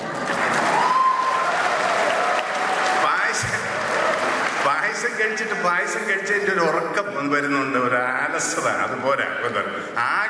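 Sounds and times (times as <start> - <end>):
audience applause at an Onam celebration: 0.0 - 5.3
speech: 5.2 - 10.2.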